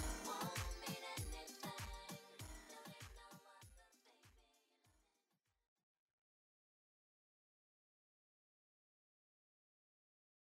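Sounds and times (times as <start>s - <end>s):
music mix at 98 bpm: 0.0s - 3.5s.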